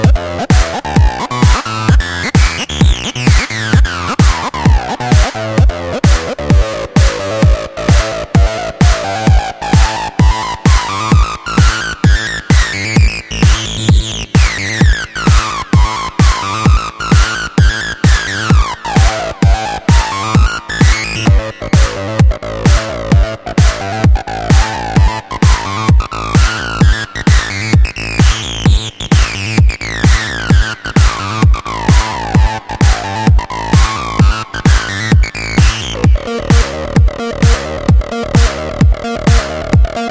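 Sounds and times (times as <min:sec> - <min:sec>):
massive acid bass: 0:00.0 - 0:40.0.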